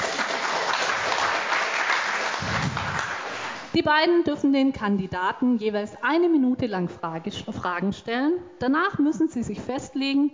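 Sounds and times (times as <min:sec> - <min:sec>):
applause: 0:00.0 - 0:03.7
speech: 0:03.8 - 0:10.3.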